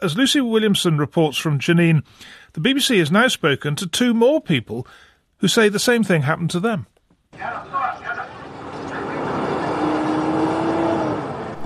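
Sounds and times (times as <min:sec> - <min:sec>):
speech: 0:00.0 - 0:08.3
Israeli military jeep driving past: 0:07.4 - 0:11.6.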